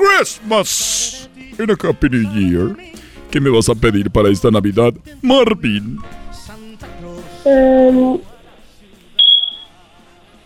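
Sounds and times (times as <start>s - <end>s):
speech: 0.2s - 6.2s, 7.4s - 8.3s
smoke alarm low-battery beep: 9.2s - 9.7s.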